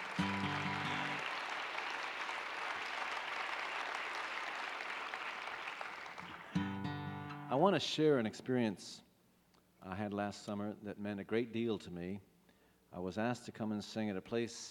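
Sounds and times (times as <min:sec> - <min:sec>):
audience applause: 0:00.0 - 0:07.0
speech: 0:07.6 - 0:09.1, 0:09.9 - 0:12.3, 0:12.9 - 0:14.7.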